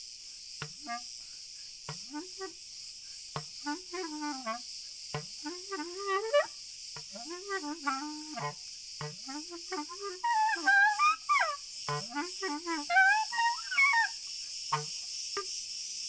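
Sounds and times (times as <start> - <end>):
several crickets in a chorus trilling: 0.0 - 16.0.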